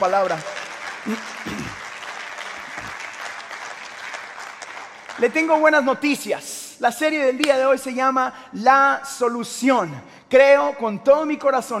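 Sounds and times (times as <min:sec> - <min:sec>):
speech: 0:00.0 - 0:01.8, 0:05.2 - 0:11.7
crowd clapping: 0:00.0 - 0:06.3.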